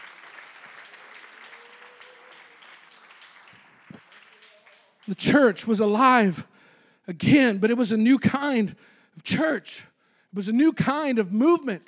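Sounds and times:
audience clapping: 0.0 - 5.5
speech: 5.1 - 6.5, 7.1 - 11.8.

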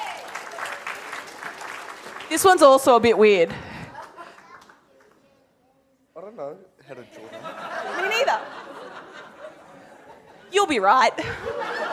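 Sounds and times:
audience applause: 0.0 - 3.0, 3.9 - 5.2
speech: 2.3 - 3.7, 6.4 - 7.4, 10.7 - 11.9
laughter: 3.6 - 4.8, 7.1 - 11.9.

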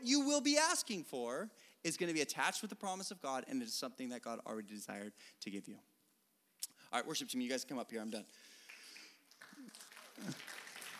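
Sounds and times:
speech: 0.0 - 5.9, 6.9 - 8.6, 9.4 - 10.5
crowd clapping: 8.6 - 10.9.

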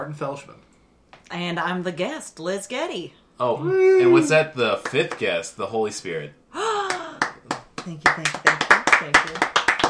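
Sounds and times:
speech: 0.0 - 0.7, 1.3 - 6.4, 7.9 - 8.4, 9.0 - 9.5
clapping: 4.8 - 5.3, 6.9 - 9.8.

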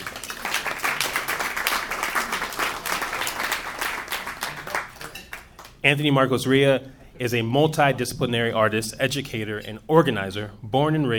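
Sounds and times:
audience applause welcoming a panelist at an art-as-activism panel event: 0.0 - 5.8
speech: 5.8 - 11.1.

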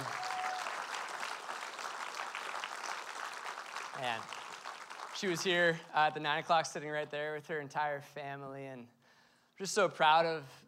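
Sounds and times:
crowd cheering: 0.0 - 5.5
crowd clapping: 0.0 - 6.2
speech: 4.0 - 4.4, 5.2 - 9.0, 9.6 - 10.6.

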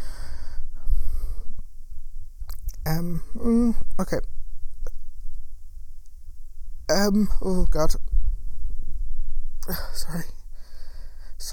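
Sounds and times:
panicked breathing during a panic attack: 0.0 - 1.6, 9.6 - 11.4
speech: 2.8 - 4.4, 7.0 - 8.1, 9.7 - 10.4, 11.4 - 11.5.

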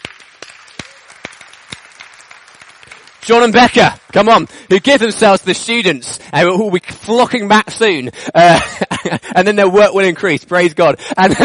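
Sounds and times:
audience applause: 0.0 - 5.8
speech: 3.2 - 11.4
laughter: 8.0 - 9.6, 11.2 - 11.4.

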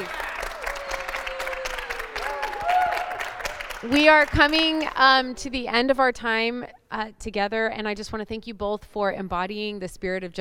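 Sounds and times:
cheer or whoop: 0.0 - 3.5
audience applause: 0.0 - 4.8
speech: 3.8 - 10.3.

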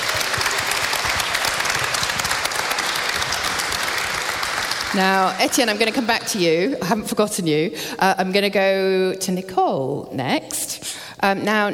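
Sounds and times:
audience applause: 0.0 - 6.3
speech: 5.0 - 11.7.

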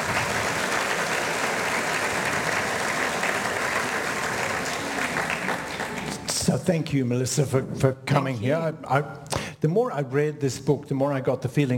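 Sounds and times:
audience applause welcoming a guest author to a book talk: 0.0 - 6.5
speech: 6.6 - 11.7.

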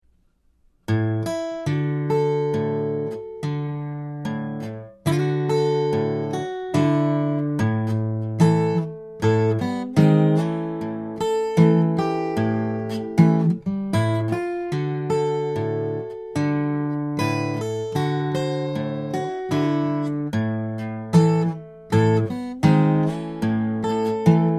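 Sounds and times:
slow blues music: 0.9 - 24.5.

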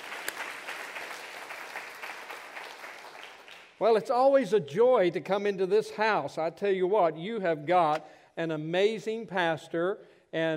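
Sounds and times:
audience clapping: 0.0 - 3.8
speech: 3.8 - 10.5.

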